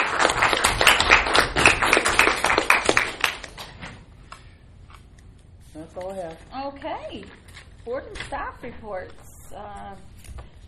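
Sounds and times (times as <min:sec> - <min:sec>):
audience applause at a board of education meeting: 0:00.0 - 0:03.6
speech: 0:06.7 - 0:10.6.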